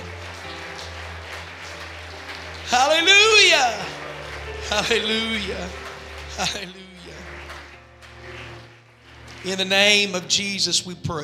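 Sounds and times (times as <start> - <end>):
audience clapping: 0.0 - 11.0
speech: 2.7 - 3.9, 4.7 - 5.8, 6.4 - 7.2, 9.4 - 11.2.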